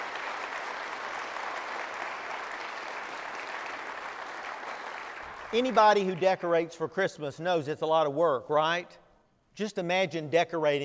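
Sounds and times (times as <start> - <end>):
audience applause: 0.0 - 6.3
speech: 5.5 - 9.0, 9.6 - 10.8.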